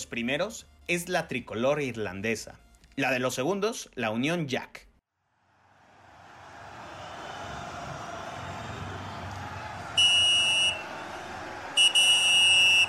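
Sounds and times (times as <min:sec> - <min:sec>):
speech: 0:00.1 - 0:04.9
referee whistle blast: 0:10.0 - 0:11.0, 0:11.7 - 0:12.8.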